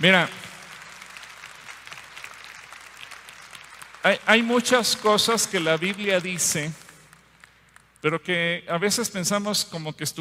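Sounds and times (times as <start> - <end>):
speech: 0.0 - 0.4, 4.0 - 6.8, 8.0 - 10.1
quiet applause at a religious talk about God: 0.0 - 8.0.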